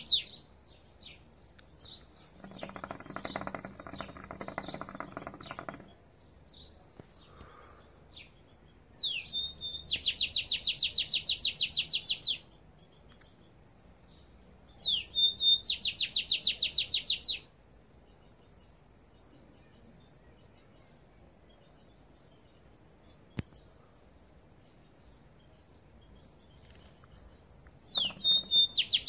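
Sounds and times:
goldfinch twittering song: 0.0s - 29.0s.

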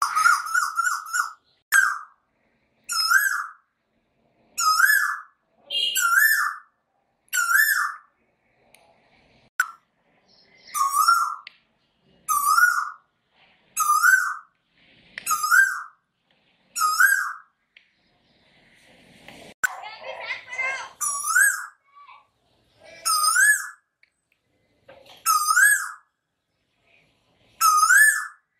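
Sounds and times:
cuckoo calling: 0.0s - 2.2s, 2.9s - 3.6s, 4.6s - 8.1s, 10.4s - 11.5s, 12.3s - 13.1s, 13.8s - 14.5s, 15.2s - 16.0s, 16.8s - 17.6s, 21.0s - 21.8s, 22.8s - 23.9s, 25.2s - 26.1s, 27.6s - 28.5s.

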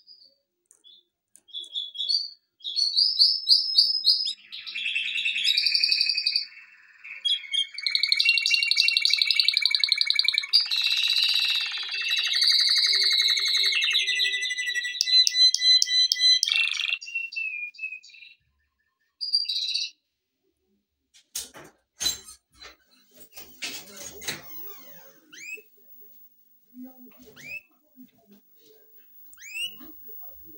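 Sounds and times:
canary singing: 0.8s - 20.0s, 24.1s - 30.5s
faint low hum: 22.6s - 30.5s.

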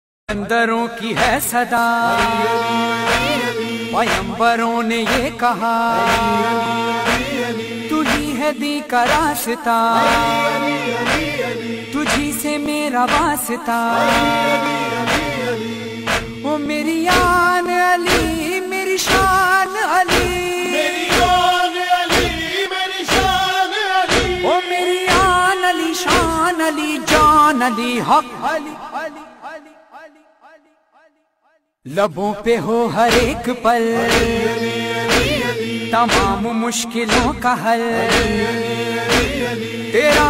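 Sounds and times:
mourning chant, nohe: 0.5s - 30.2s, 31.9s - 40.2s.

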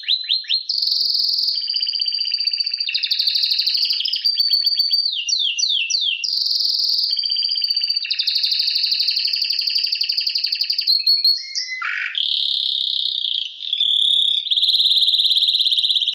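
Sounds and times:
male canary singing: 0.0s - 16.1s.

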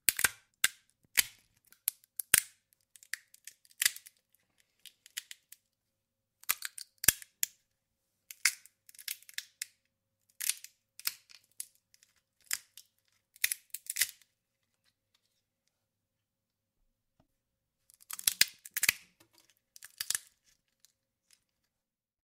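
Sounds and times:
walnuts cracking: 0.1s - 4.2s, 6.4s - 7.5s, 8.3s - 9.8s, 10.4s - 14.2s, 17.9s - 20.4s.

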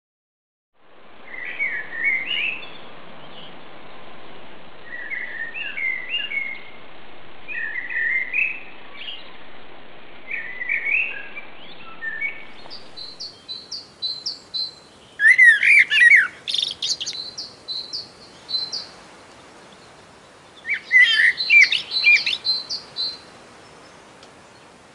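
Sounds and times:
background hiss: 0.8s - 24.9s
common blackbird singing: 1.3s - 3.5s, 4.9s - 6.7s, 7.5s - 9.4s, 10.3s - 19.0s, 19.6s - 24.7s.

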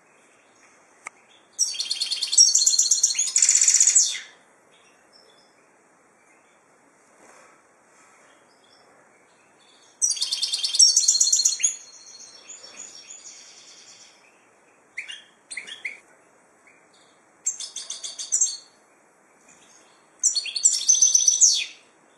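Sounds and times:
finch calls: 1.5s - 5.5s, 8.5s - 16.0s, 16.7s - 18.8s, 19.4s - 21.9s.

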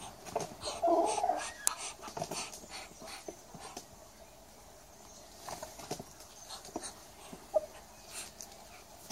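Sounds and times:
Muscovy duck rasping hisses: 0.0s - 3.9s, 6.4s - 9.0s.

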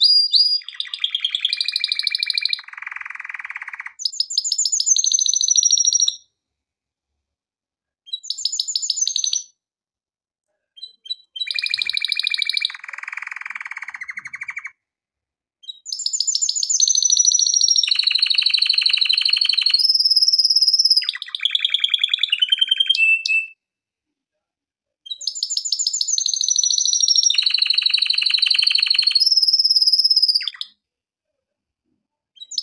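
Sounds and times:
canary song in rapid trilled tours: 0.0s - 6.3s, 8.1s - 9.6s, 10.8s - 14.8s, 15.6s - 23.6s, 25.0s - 30.8s, 32.4s - 32.6s.

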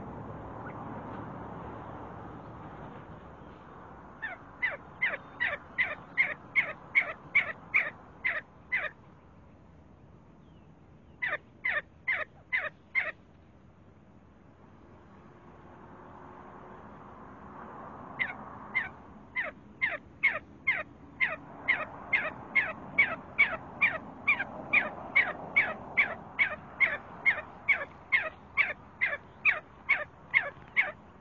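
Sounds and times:
See-see partridge calling: 4.2s - 9.0s, 11.2s - 13.2s, 18.2s - 31.1s.

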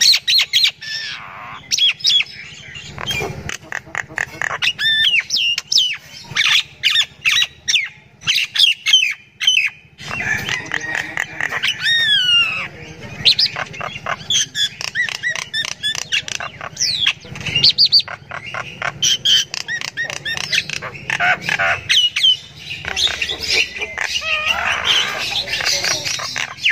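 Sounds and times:
myna chatter: 0.7s - 26.7s.

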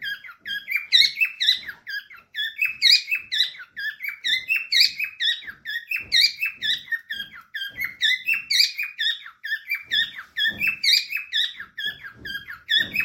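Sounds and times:
parrot chirping calls: 0.0s - 13.0s.

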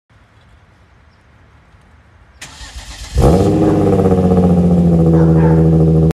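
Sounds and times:
Hyundai Genesis Coupe engine: 2.4s - 6.1s.

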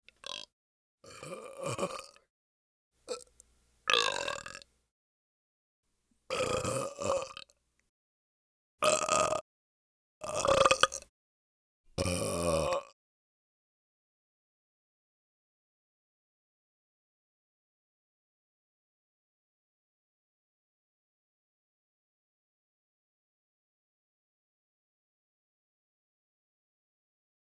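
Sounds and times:
person burping: 0.2s - 2.3s, 3.1s - 3.3s, 3.9s - 4.6s, 6.3s - 7.5s, 8.8s - 9.4s, 10.2s - 11.1s, 12.0s - 13.0s.

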